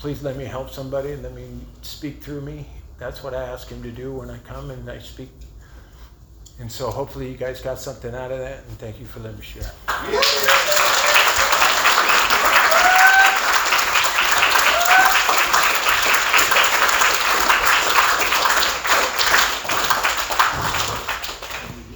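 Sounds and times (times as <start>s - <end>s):
speech: 0.0s - 5.5s, 6.6s - 10.7s
faint cheers and whistles: 9.9s - 17.0s
audience applause: 9.9s - 21.9s.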